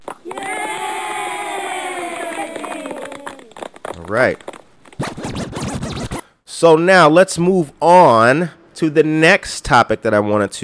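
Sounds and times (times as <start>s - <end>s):
crowd clapping: 0.0s - 4.6s
crowd cheering and whooping: 0.2s - 3.7s
speech: 4.1s - 4.6s, 6.6s - 10.6s.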